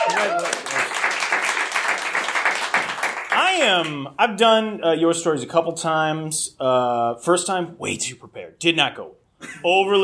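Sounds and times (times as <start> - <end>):
brief cheer: 0.0 - 0.9
speech: 0.0 - 0.9, 3.6 - 10.0
crowd applause: 0.0 - 3.4.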